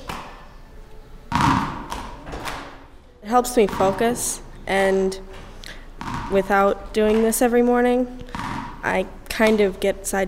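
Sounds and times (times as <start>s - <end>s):
several balls bouncing on a hard surface: 0.0s - 0.4s, 1.3s - 9.9s
speech: 3.3s - 5.3s, 6.3s - 8.2s, 8.8s - 10.2s.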